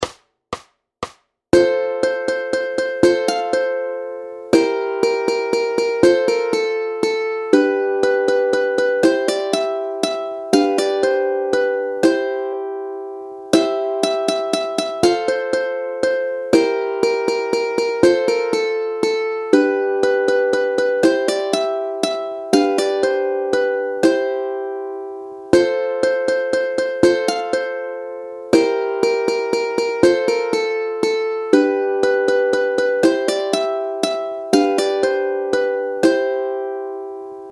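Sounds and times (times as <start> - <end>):
ukulele playing a minuet: 1.6 - 37.5.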